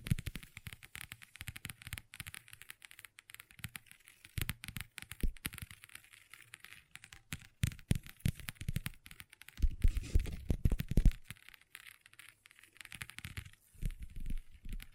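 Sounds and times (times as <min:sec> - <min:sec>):
long nails tapping and scratching on a tabletop: 0:00.0 - 0:14.9.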